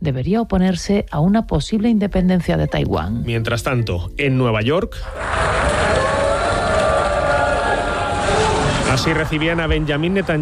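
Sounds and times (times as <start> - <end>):
speech: 0.0 - 6.1, 8.9 - 10.4
crowd booing in assembly hall: 5.1 - 10.4.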